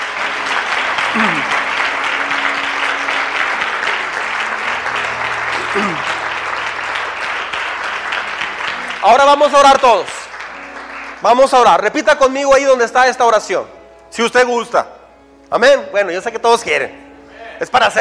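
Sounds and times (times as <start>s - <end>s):
loud audience applause: 0.0s - 11.9s
speech: 1.2s - 1.6s, 9.0s - 10.2s, 11.2s - 17.0s, 17.6s - 17.9s.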